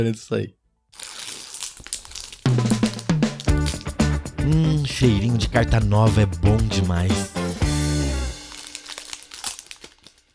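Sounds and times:
speech: 0.0s - 1.1s, 4.4s - 7.4s
Magic The Gathering Shadows over Innistrad booster pack foil wrapper torn and handled: 0.9s - 4.2s, 8.3s - 10.3s.

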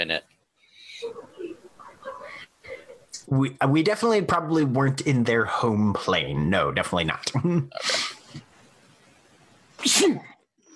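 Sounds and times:
speech: 3.3s - 8.4s, 9.8s - 10.3s
loud sneeze: 9.8s - 10.4s.

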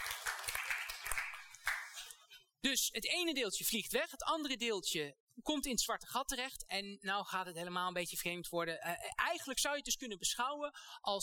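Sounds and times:
audience applause: 0.0s - 2.0s
speech: 2.6s - 11.2s.

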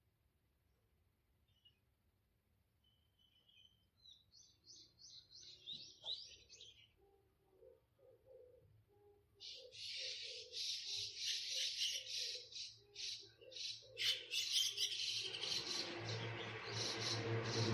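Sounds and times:
garden birds chirping: 2.8s - 17.7s
steady low hum: 15.2s - 17.7s.

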